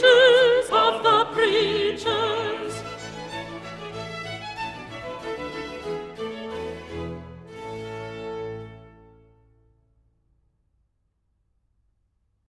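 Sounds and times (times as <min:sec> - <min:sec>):
sopranos singing: 0:00.0 - 0:03.6.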